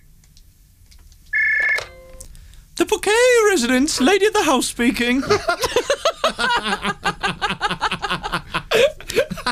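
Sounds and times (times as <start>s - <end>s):
old telephone ringing: 1.3s - 2.3s
speech: 3.0s - 6.9s
laughter: 5.2s - 9.5s.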